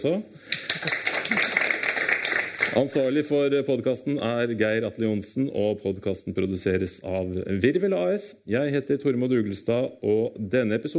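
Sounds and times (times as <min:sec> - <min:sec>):
speech: 0:00.0 - 0:01.4, 0:02.8 - 0:10.9
small applause: 0:00.5 - 0:03.1.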